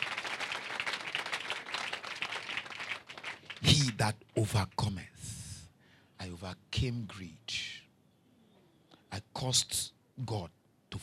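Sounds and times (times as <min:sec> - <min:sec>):
audience clapping: 0:00.0 - 0:04.1
speech: 0:03.8 - 0:05.1, 0:06.4 - 0:07.6, 0:09.4 - 0:11.0.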